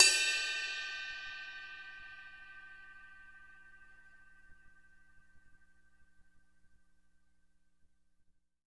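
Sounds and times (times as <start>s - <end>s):
crash cymbal bell: 0.0s - 5.5s.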